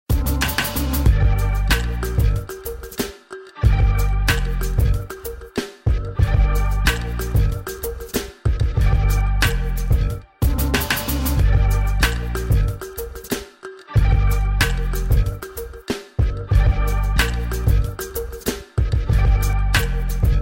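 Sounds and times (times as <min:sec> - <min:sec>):
instrumental music: 0:00.1 - 0:20.3.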